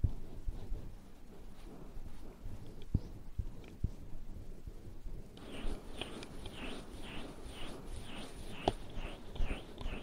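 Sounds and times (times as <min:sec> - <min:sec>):
muffled rumbling rubbing of ear massage: 0:00.0 - 0:10.0
rhythmic scratchy swishing: 0:00.0 - 0:10.0
faint steady high whine: 0:05.3 - 0:10.0.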